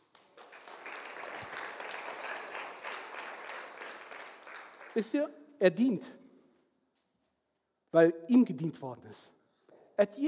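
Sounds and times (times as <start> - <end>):
crowd applauding: 0.0 - 5.3
speech: 5.0 - 6.2, 7.9 - 9.4, 10.0 - 10.2.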